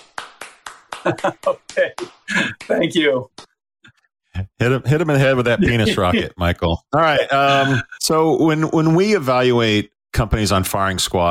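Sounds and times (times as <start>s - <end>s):
golf clap: 0.0s - 3.5s
laughter: 1.0s - 2.7s, 5.5s - 6.5s, 7.2s - 8.1s
speech: 1.0s - 3.5s, 4.6s - 11.3s.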